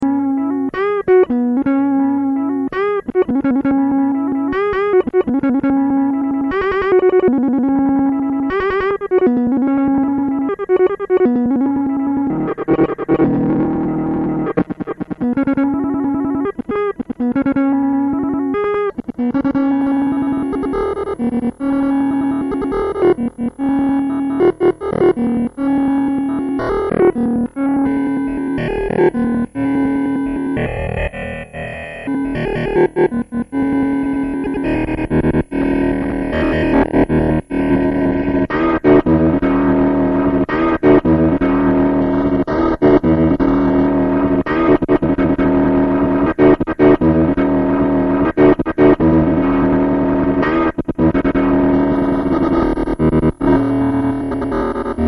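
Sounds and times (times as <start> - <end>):
guitar: 0.0 - 55.0.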